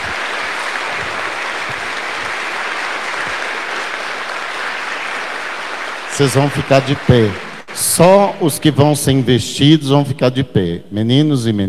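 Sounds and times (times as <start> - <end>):
audience applause for children: 0.0 - 9.3
speech: 6.2 - 11.6.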